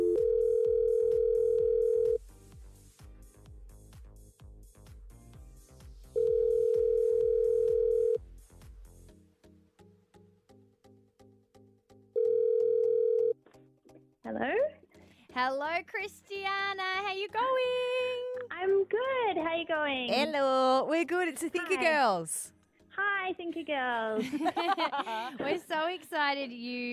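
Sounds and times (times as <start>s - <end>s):
low electronic ringback tone while placing a phone call: 0.0s - 2.2s, 6.2s - 8.2s, 12.2s - 13.4s
rhythmic music bed: 0.5s - 12.8s, 13.4s - 26.9s
speech: 15.4s - 18.0s, 18.6s - 22.6s, 23.3s - 26.9s
laughter: 24.2s - 25.6s.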